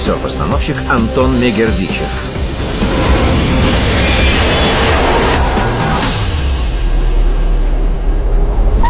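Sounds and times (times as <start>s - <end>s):
speech: 0.1s - 3.1s
metro train pulling away from an underground platform: 2.0s - 7.9s
low hum: 2.0s - 8.8s.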